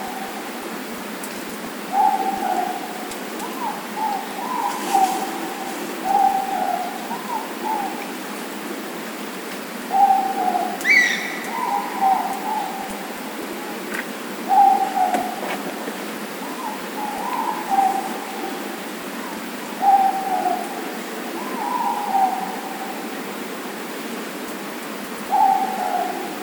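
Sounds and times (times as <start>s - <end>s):
morepork hooting: 1.9s - 8.1s, 9.9s - 13.1s, 14.4s - 15.4s, 16.4s - 18.6s, 19.2s - 22.9s, 25.3s - 26.4s.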